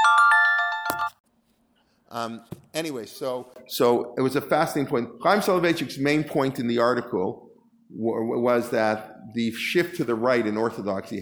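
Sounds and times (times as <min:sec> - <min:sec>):
phone ringtone: 0:00.0 - 0:01.2
speech: 0:02.1 - 0:11.2.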